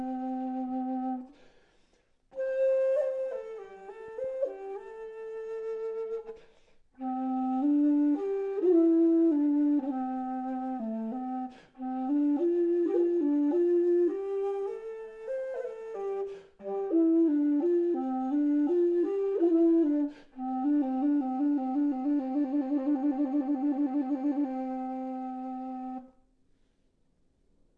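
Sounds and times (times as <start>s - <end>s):
bass dizi bamboo flute: 0.0s - 1.4s, 2.4s - 6.4s, 7.0s - 26.2s.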